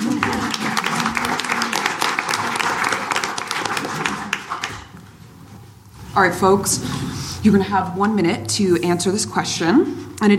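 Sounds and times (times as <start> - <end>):
audience applauding: 0.0 - 5.0
speech: 6.2 - 10.3.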